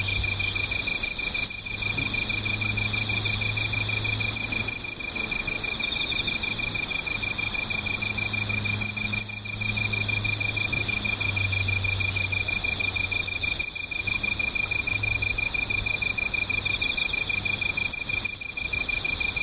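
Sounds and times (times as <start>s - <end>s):
insect chorus: 0.0s - 19.4s.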